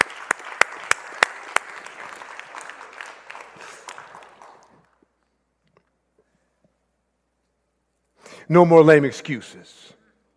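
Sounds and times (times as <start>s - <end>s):
hand clapping: 0.0s - 5.1s
speech: 8.5s - 10.0s.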